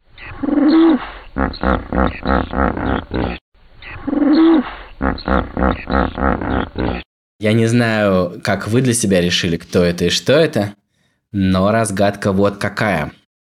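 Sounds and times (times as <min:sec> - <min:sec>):
hippopotamus vocalizations: 0:00.0 - 0:07.1
speech: 0:00.6 - 0:03.4, 0:07.4 - 0:13.2.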